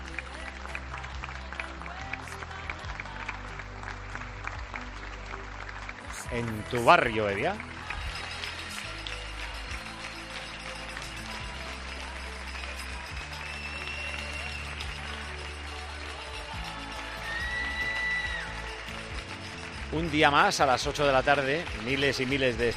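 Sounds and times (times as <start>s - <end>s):
many people applauding from balconies: 0.0s - 22.7s
speech: 6.3s - 7.7s, 20.0s - 22.7s
high whistles: 13.2s - 15.0s
scattered shouts and voices: 17.1s - 18.6s.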